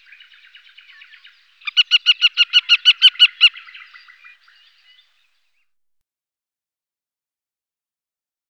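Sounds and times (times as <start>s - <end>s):
western marsh harrier kek calls: 0.0s - 5.1s.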